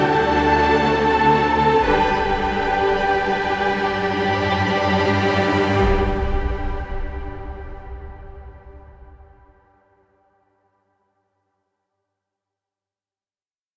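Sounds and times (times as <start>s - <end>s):
ambient music: 0.0s - 9.9s.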